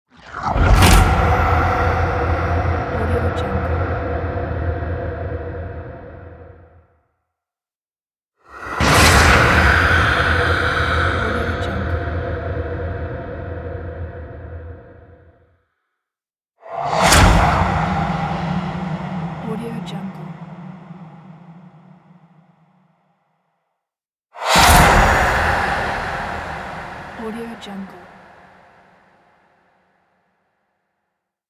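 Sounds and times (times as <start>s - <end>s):
creepy horror transition: 0.2s - 6.7s, 8.6s - 15.2s, 16.7s - 22.6s, 24.4s - 28.7s.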